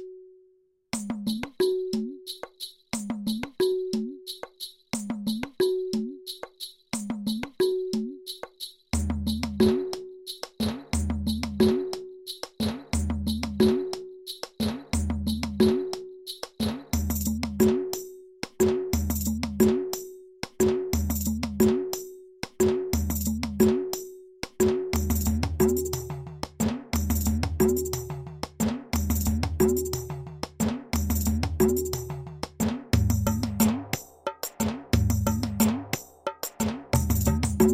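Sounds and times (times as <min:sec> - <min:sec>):
folk beats: 0:00.9 - 0:37.7.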